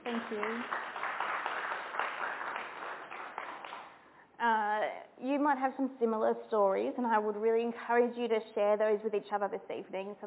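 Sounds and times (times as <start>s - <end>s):
small group clapping: 0.0s - 4.0s
speech: 0.3s - 1.0s, 5.5s - 10.2s.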